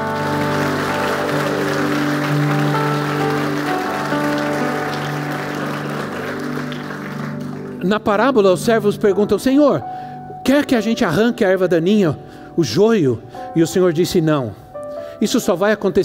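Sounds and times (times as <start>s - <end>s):
applause: 0.0s - 8.1s
speech: 7.9s - 14.6s, 15.2s - 16.0s.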